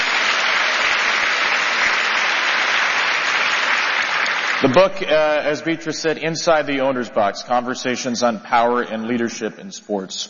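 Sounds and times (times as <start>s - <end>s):
audience applause: 0.0s - 5.2s
speech: 4.6s - 10.2s.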